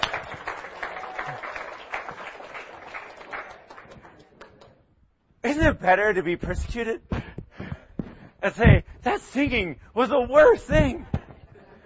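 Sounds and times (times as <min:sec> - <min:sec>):
crowd applauding: 0:00.0 - 0:04.7
speech: 0:05.5 - 0:07.1, 0:08.4 - 0:11.1.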